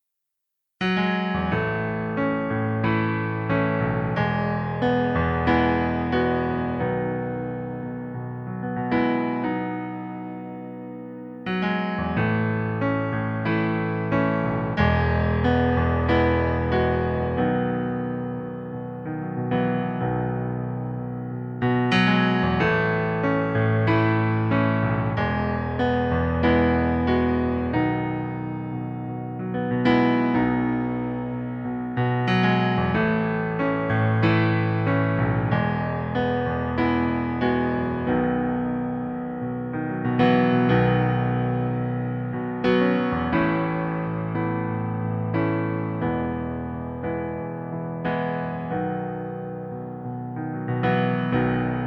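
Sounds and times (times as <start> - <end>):
piano backing track in B major: 0.8 - 51.8.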